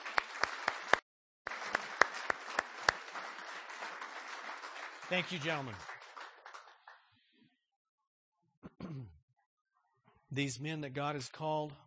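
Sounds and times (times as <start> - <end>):
crowd applause: 0.0 - 7.2
speech: 5.1 - 5.9, 10.4 - 11.8.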